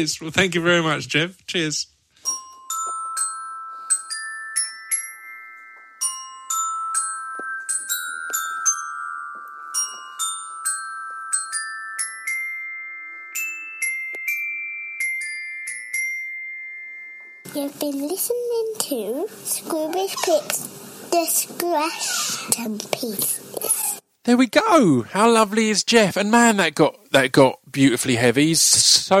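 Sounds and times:
speech: 0.0 - 2.4, 17.8 - 29.1
xylophone being played: 2.2 - 17.7.

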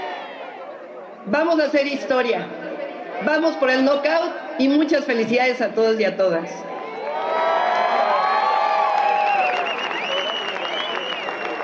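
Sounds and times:
crowd of boxing fans roaring and cheering in plaza: 0.0 - 0.6, 6.6 - 11.6
speech: 1.2 - 2.6, 3.2 - 6.7
shouts and whoops: 6.6 - 10.7.

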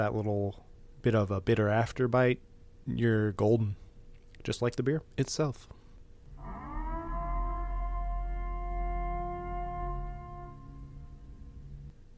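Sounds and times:
speech: 0.0 - 3.8, 4.4 - 5.8
civil defense style siren announcing the annual Purge: 6.3 - 11.9.

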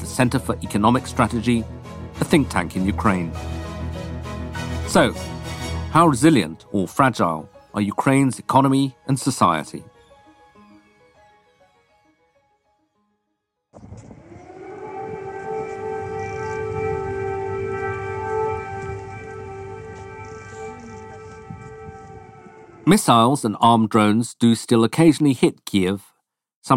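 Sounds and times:
speech: 0.2 - 3.6, 4.9 - 9.9, 22.9 - 26.7
air raid alarm siren: 13.8 - 22.9.

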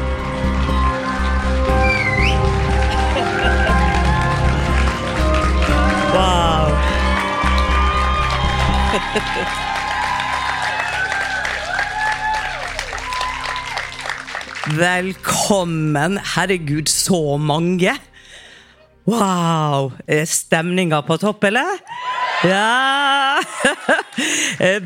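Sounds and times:
packed audience cheering and applauding at Parkteatret in Oslo: 0.0 - 14.9
laughter: 1.8 - 11.8, 22.4 - 24.8
speech: 9.2 - 9.7, 14.7 - 18.1, 19.1 - 24.8.

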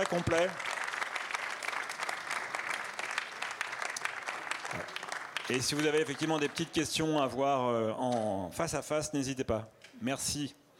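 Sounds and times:
speech: 0.0 - 0.7, 5.5 - 10.6
audience applause: 0.0 - 7.0.

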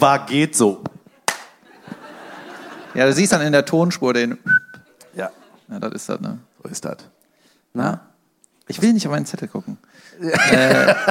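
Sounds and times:
speech: 0.0 - 0.9, 3.0 - 4.6, 5.2 - 8.1, 8.7 - 11.0
single person clapping: 1.2 - 1.6
laughter: 1.6 - 3.2, 10.2 - 11.0.

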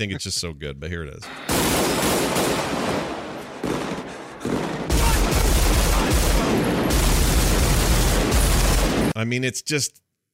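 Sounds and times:
speech: 0.0 - 2.7, 9.2 - 10.0
heavy booming gunshots from the shootout in the film Heat: 1.4 - 9.2
automatic gunfire bursts from the shootout in the film Heat: 1.5 - 9.1.

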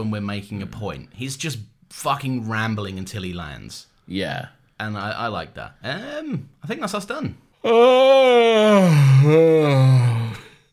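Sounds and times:
speech: 0.0 - 10.2
person yawning: 7.6 - 10.6.

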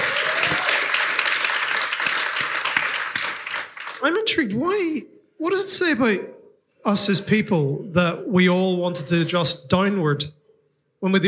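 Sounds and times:
audience applause: 0.0 - 4.2
speech: 4.0 - 10.4, 11.0 - 11.2.

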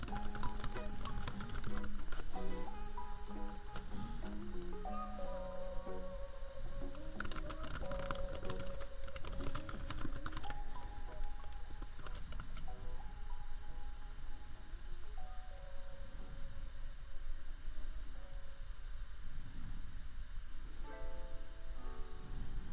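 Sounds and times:
keyboard tapping: 0.0 - 6.0, 6.7 - 13.1
laptop fan hum: 0.0 - 22.7.

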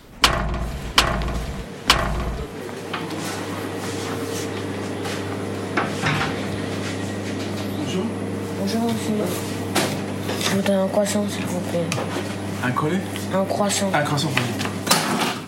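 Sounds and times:
metal gate slamming shut: 0.0 - 2.5
steady low mechanical hum: 0.0 - 14.8
speech: 8.9 - 9.5, 10.6 - 14.7.

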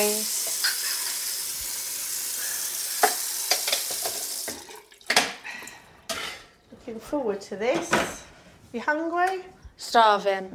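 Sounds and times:
brunch frying in a kitchen: 0.0 - 5.1
speech: 6.9 - 10.5.

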